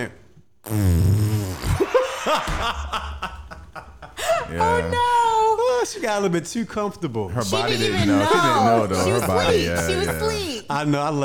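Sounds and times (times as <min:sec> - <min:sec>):
speech: 0:00.0 - 0:00.9, 0:02.3 - 0:03.2, 0:04.5 - 0:05.2, 0:05.8 - 0:11.2
fart: 0:00.6 - 0:01.9
laughter: 0:01.8 - 0:05.5, 0:07.4 - 0:10.7.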